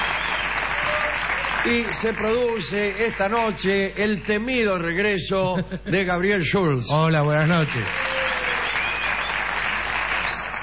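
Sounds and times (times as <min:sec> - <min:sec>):
audience applause for two artists at an evening show: 0:00.0 - 0:04.4, 0:07.3 - 0:10.6
speech: 0:01.6 - 0:08.2.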